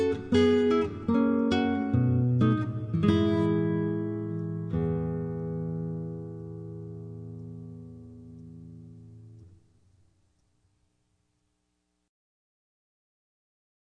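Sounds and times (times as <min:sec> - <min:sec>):
guitar: 0:00.0 - 0:10.2.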